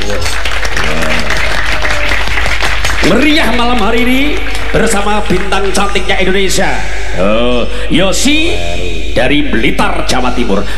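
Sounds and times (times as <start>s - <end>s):
audience applause at an evening singing contest in Blitar, East Java: 0.0s - 6.6s
speech: 3.0s - 10.7s.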